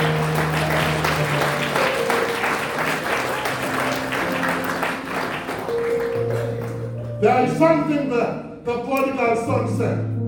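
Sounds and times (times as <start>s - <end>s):
audience clapping: 0.0s - 7.2s
speech: 7.2s - 10.1s.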